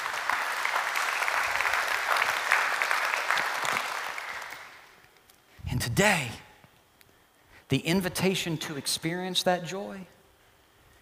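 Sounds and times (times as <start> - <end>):
audience applause: 0.0 - 5.0
speech: 5.8 - 6.4, 7.7 - 10.2.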